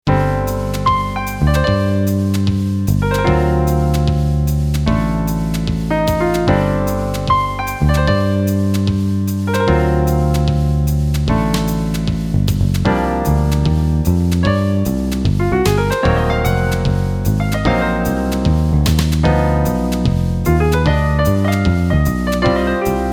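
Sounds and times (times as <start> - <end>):
jazz fusion music: 0.1 - 23.1.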